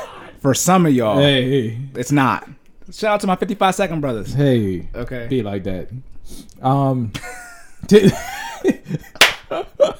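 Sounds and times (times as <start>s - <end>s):
speech: 0.4s - 9.9s
hand claps: 9.2s - 9.5s.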